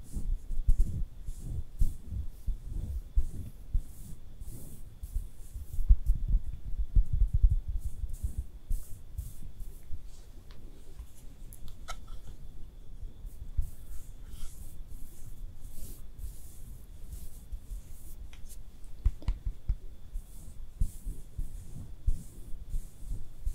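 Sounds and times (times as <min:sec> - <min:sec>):
faint high whine: 0:00.0 - 0:23.5
makeup being applied with rubbing and brushing strokes: 0:00.0 - 0:23.5
muffled low thumps: 0:05.6 - 0:08.5
sharp clicks and taps: 0:19.0 - 0:19.8.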